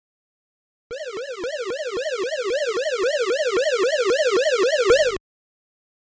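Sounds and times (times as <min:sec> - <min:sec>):
Bomberman II game sound effects: 0:00.9 - 0:05.2.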